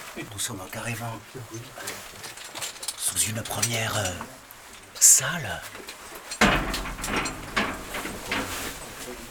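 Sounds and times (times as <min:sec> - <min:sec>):
speech: 0:00.3 - 0:02.0, 0:03.1 - 0:04.4, 0:05.0 - 0:07.3
door closing: 0:06.4 - 0:09.2.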